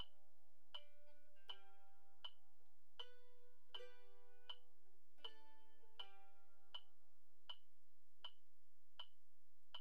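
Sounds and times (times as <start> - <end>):
mandolin: 0.0 - 7.2.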